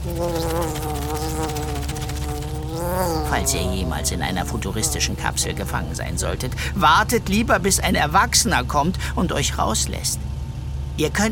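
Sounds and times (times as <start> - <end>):
flying beetle buzzing: 0.0 - 6.8
speech: 0.2 - 0.5, 3.4 - 10.3, 11.0 - 11.2.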